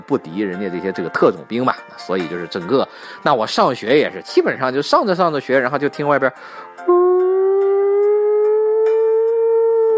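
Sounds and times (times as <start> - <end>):
speech: 0.1 - 7.2
voice imitating an air raid siren: 6.9 - 9.9.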